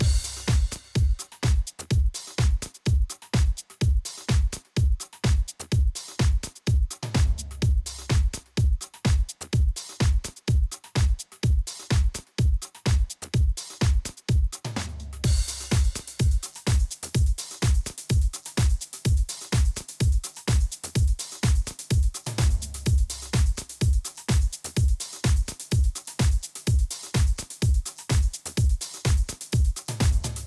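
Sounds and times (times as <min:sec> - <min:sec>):
music beat: 0:00.0 - 0:30.4.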